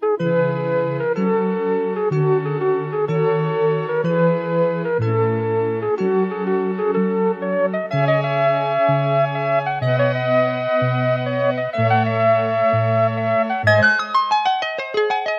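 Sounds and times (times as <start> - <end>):
romantic theme music: 0.2 - 15.3.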